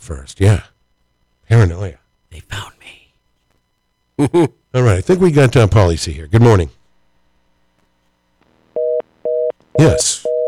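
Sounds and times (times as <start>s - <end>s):
speech: 0.0s - 0.7s, 1.5s - 2.6s, 4.2s - 6.8s, 9.8s - 10.3s
telephone busy signal two-tone beep: 8.8s - 10.4s.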